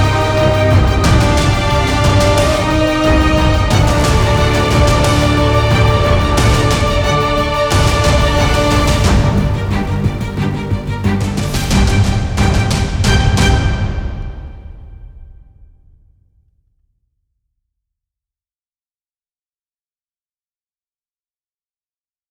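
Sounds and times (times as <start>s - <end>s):
hybrid orchestral music: 0.0s - 15.2s.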